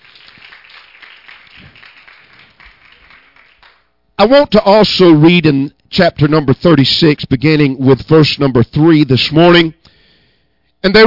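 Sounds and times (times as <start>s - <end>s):
hand clapping: 0.0s - 3.9s
speech: 4.2s - 9.8s, 10.8s - 11.0s.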